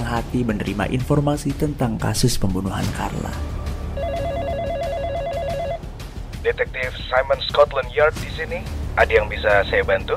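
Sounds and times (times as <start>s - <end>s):
speech: 0.1s - 3.6s, 6.4s - 10.1s
warbling electronic telephone ring: 3.9s - 5.9s.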